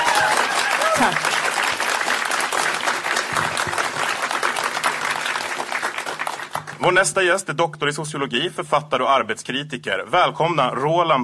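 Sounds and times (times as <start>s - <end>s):
audience clapping: 0.0s - 7.3s
speech: 1.0s - 1.3s, 6.8s - 11.2s.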